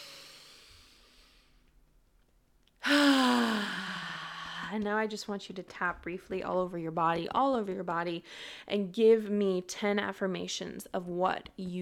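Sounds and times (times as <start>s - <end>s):
voiced sigh during a guided EFT tapping session: 2.8s - 4.7s
speech: 4.7s - 11.8s.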